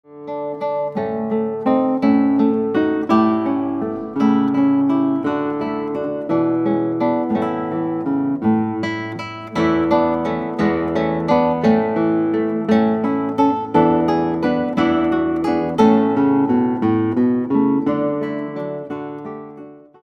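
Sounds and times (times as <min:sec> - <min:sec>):
guitar: 0:00.0 - 0:20.0.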